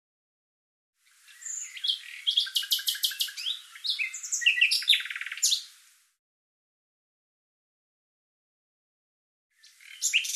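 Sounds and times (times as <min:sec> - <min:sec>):
bird calling in rapid high chirps: 0:01.4 - 0:05.7, 0:09.6 - 0:10.3.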